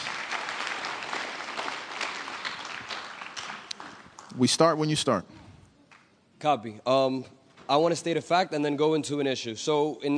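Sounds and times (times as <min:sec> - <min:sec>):
audience applause: 0:00.0 - 0:04.5
speech: 0:04.4 - 0:05.4, 0:06.4 - 0:10.1.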